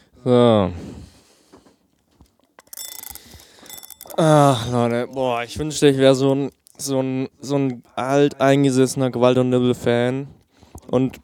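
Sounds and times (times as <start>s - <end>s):
speech: 0.2s - 0.8s, 4.2s - 11.2s
egg timer being wound up: 2.6s - 5.4s.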